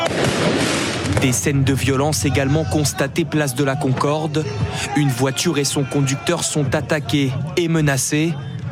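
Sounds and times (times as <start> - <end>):
firework mortar shots fired at police: 0.1 - 1.3
speech: 1.2 - 8.6.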